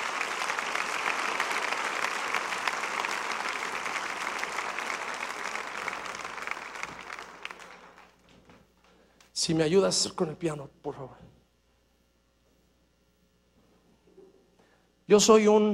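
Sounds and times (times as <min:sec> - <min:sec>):
audience applause: 0:00.0 - 0:08.2
speech: 0:09.4 - 0:11.4, 0:15.1 - 0:15.7.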